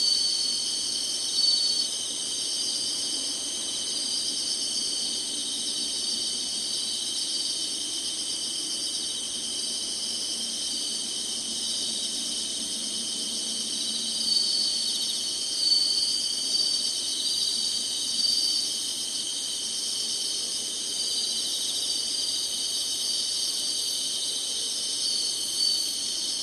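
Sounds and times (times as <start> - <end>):
insect chorus trilling: 0.0 - 26.4.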